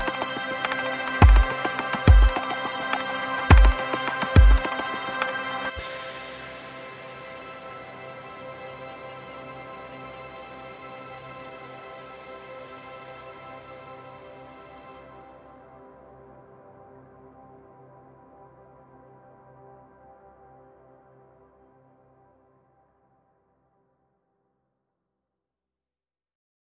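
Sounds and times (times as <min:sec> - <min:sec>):
percussion: 0:00.0 - 0:07.0
synth pads: 0:00.0 - 0:20.1.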